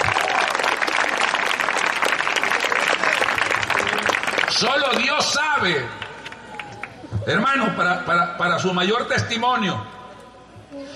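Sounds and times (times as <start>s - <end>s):
audience applause: 0.0s - 5.4s
speech: 4.6s - 6.0s, 7.2s - 9.9s.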